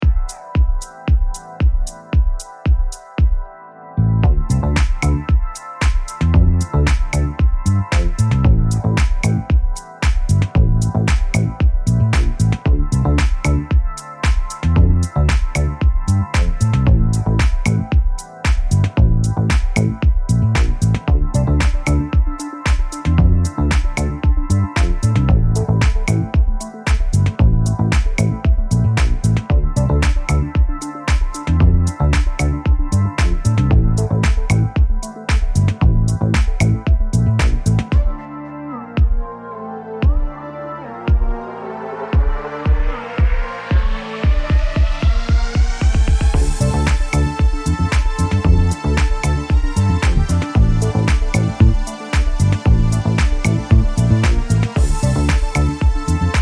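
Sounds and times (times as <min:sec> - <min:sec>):
house music bassline: 0:00.0 - 0:39.4, 0:40.0 - 0:56.4.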